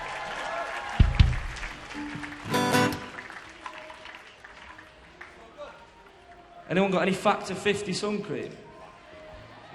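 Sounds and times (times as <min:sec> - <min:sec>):
audience applause: 0:00.0 - 0:06.4
speech: 0:06.7 - 0:08.6.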